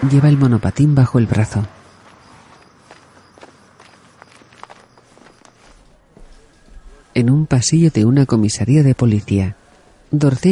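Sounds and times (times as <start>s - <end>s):
speech: 0.0s - 1.8s, 7.2s - 10.5s
firm footsteps walking away from a hotel outside: 1.6s - 7.2s.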